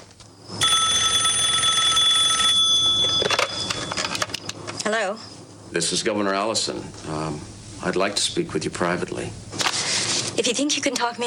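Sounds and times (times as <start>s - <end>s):
telephone ringing: 0.6s - 4.5s
speech: 5.8s - 9.5s, 10.4s - 11.2s.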